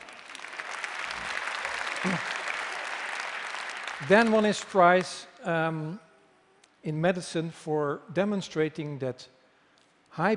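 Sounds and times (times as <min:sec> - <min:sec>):
applause: 0:00.0 - 0:05.2
speech: 0:02.0 - 0:02.3, 0:04.0 - 0:06.0, 0:06.8 - 0:09.4, 0:10.1 - 0:10.3.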